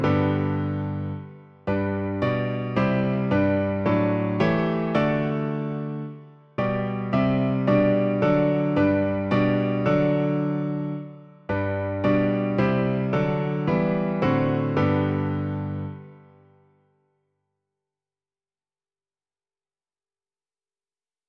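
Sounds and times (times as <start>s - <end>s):
piano version: 0.0s - 16.7s.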